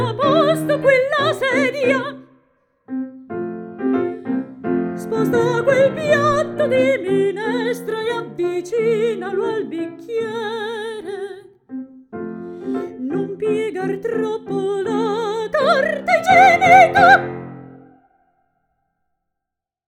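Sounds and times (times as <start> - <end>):
person singing satirical songs: 0.0 - 2.2, 4.1 - 11.5, 12.5 - 17.4
piano: 0.0 - 18.0.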